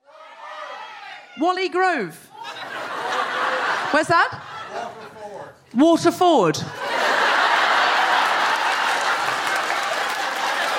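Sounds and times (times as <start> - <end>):
speech: 1.4 - 2.3, 3.9 - 4.8, 5.5 - 6.9
laughter: 2.3 - 5.4, 6.7 - 10.7
audience applause: 6.8 - 10.7.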